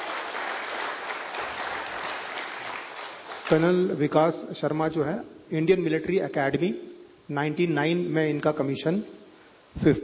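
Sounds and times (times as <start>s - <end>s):
loud audience applause: 0.0s - 3.7s
speech: 3.5s - 10.0s.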